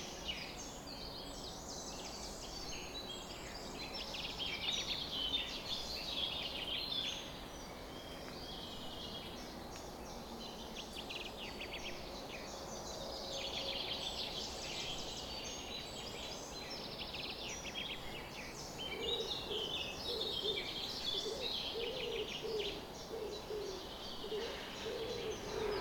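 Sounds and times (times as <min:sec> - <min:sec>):
birds chirping in a dawn chorus: 0:00.0 - 0:25.7
dove-like cooing: 0:18.9 - 0:25.7.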